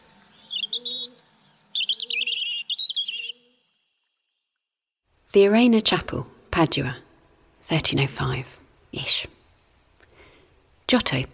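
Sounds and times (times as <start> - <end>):
robin chirping: 0.3 - 3.9
speech: 5.3 - 7.0, 7.7 - 9.4, 10.9 - 11.3.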